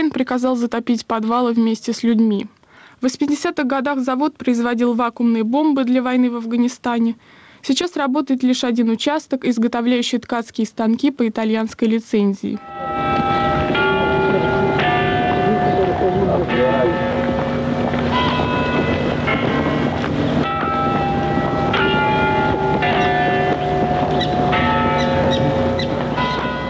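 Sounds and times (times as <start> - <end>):
speech: 0.0 - 13.1
Nevyansk Tower clock bells striking: 12.6 - 26.6
steady wind noise: 12.7 - 26.6.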